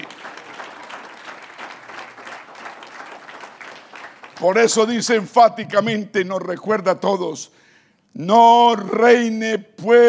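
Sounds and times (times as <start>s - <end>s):
audience applause: 0.0s - 5.1s
speech: 4.4s - 10.0s.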